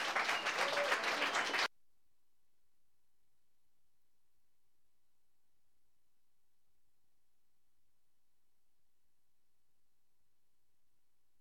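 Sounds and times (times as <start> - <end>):
audience applause at an open mic welcoming a singer and accompanist: 0.0 - 1.7.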